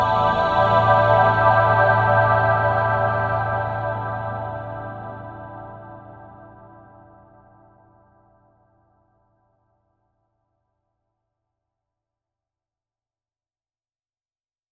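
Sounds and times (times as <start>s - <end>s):
analog chorus chords with EQ: 0.0s - 8.4s.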